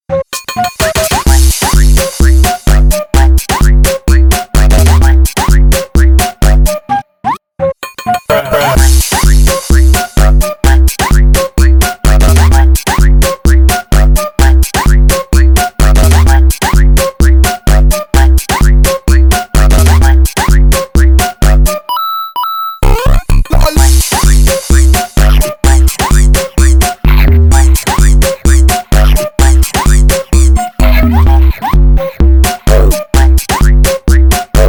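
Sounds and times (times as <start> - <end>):
instrumental music: 0.2 - 21.9, 22.8 - 34.6.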